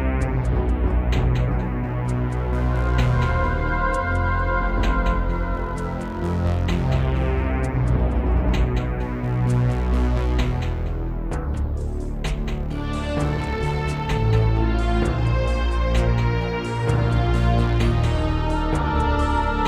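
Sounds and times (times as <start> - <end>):
synthesizer module music: 0.0 - 19.6.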